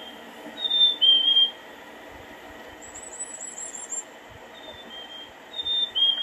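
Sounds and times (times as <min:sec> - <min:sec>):
recorded bird call at a feeder: 0:00.0 - 0:01.6, 0:02.8 - 0:06.2.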